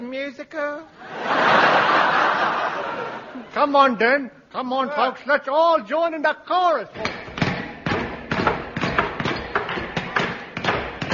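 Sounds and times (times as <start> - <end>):
speech: 0.1 - 7.2
laughter: 1.0 - 3.5
hammering nails: 7.0 - 11.1.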